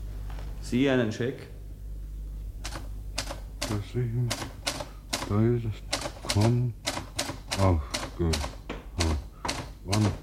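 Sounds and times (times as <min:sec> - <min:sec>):
speech: 0:00.7 - 0:01.6, 0:03.7 - 0:04.6, 0:05.2 - 0:06.8, 0:07.6 - 0:09.2, 0:09.8 - 0:10.2
typewriter keys striking in a radio drama scene: 0:02.6 - 0:10.2.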